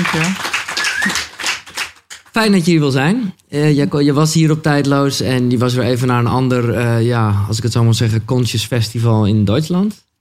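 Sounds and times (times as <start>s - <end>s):
speech: 0.0s - 0.4s, 1.0s - 1.3s, 2.4s - 10.1s
audience applause: 0.0s - 2.3s.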